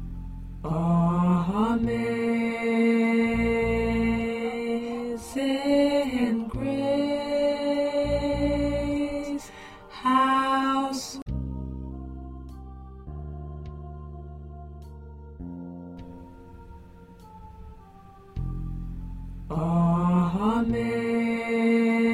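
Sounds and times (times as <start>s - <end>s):
first tenor voice singing: 0.7s - 11.3s, 19.5s - 22.1s.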